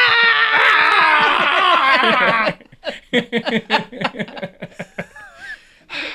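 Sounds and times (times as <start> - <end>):
voice imitating Professor X screaming: 0.0 - 2.6
choppy bursting laughter: 0.9 - 5.6.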